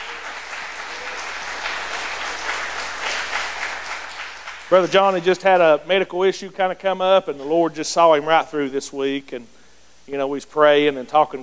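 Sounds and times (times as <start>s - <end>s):
audience clapping hands in praise: 0.0s - 5.6s
speech: 4.7s - 11.4s.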